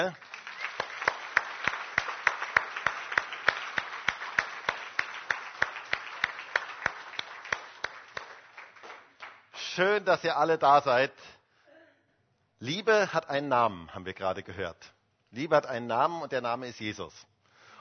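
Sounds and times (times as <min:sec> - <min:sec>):
speech: 0:00.0 - 0:00.2, 0:09.8 - 0:11.3, 0:12.6 - 0:17.7
audience applause: 0:00.0 - 0:09.4.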